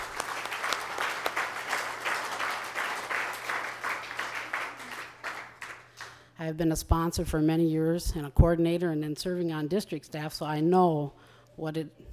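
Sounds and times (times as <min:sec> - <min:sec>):
audience applause for sponsors: 0:00.0 - 0:06.2
speech: 0:06.4 - 0:12.1.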